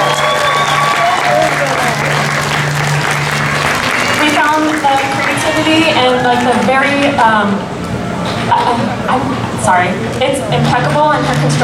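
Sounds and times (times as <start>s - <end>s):
audience applause: 0.0s - 7.2s
speech: 5.7s - 7.8s, 8.7s - 11.6s.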